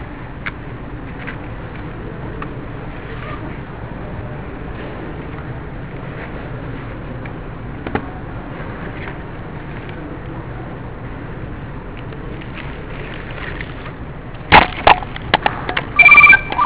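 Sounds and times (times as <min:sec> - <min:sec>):
low steady noise: 0:00.0 - 0:16.6
telephone ringing: 0:16.0 - 0:16.6.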